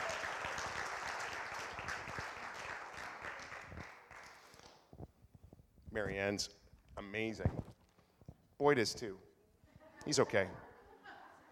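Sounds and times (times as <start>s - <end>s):
audience applause: 0.0s - 4.5s
speech: 6.0s - 7.6s, 8.6s - 9.3s, 10.1s - 10.6s.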